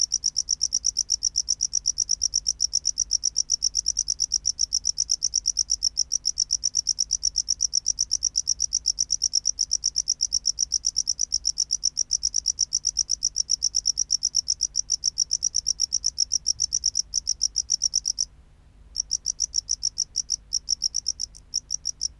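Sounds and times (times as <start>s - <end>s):
tropical house cricket chirping: 0.0s - 18.3s, 19.0s - 22.1s.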